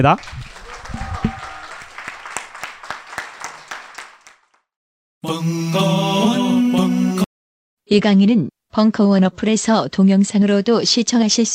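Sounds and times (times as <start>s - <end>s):
speech: 0.0s - 0.5s, 5.2s - 6.4s, 7.9s - 11.5s
audience applause: 0.0s - 4.6s.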